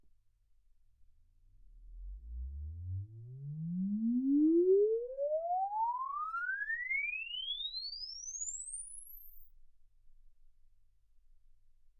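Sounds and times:
exponential sine sweep from 10 Hz to 24 kHz: 2.0s - 9.7s.

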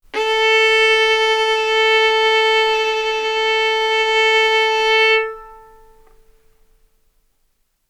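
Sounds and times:
violin bowed mezzo-forte on the A string, A4 and B4: 0.1s - 6.4s.

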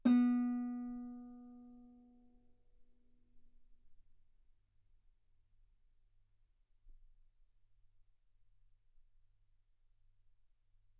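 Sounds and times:
guitar B3 note on B string played fortissimo: 0.0s - 1.7s.

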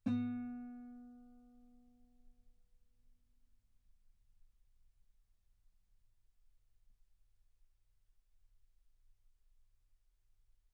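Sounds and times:
guitar note B3: 0.1s - 1.2s.

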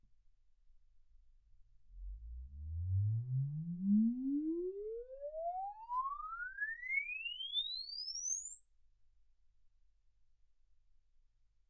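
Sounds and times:
exponential sine sweep from 10 Hz to 24 kHz: 2.0s - 9.4s.

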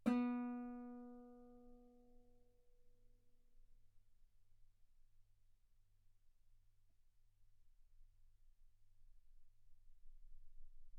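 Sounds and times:
guitar B3 note on B string played fortissimo: 0.0s - 1.6s.

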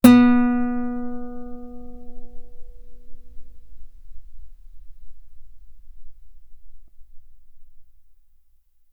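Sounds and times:
guitar note B3: 0.0s - 6.3s.

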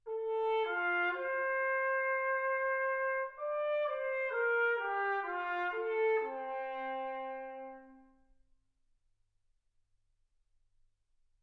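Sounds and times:
trumpet: 0.0s - 8.4s.

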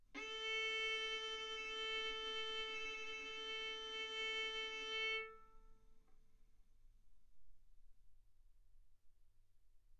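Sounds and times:
violin bowed arco notes: 0.2s - 5.5s.

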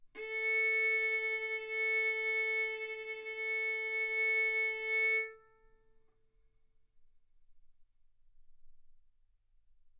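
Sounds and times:
violin bowed arco notes: 0.2s - 5.7s.

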